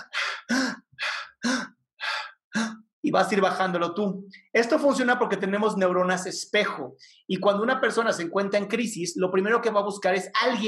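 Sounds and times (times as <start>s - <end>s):
slow breathing demonstrated by a person: 0.0s - 2.7s
speech: 3.1s - 10.6s.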